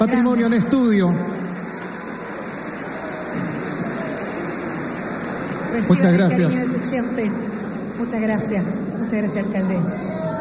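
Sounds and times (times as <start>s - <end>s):
speech: 0.0s - 1.4s, 5.7s - 10.3s
audience applause: 0.0s - 9.2s.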